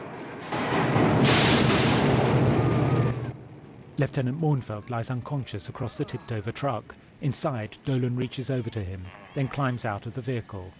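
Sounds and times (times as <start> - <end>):
film explosion blasting a crater in a road and striking a transmitter tower: 0.0 - 4.0
speech: 4.0 - 10.7.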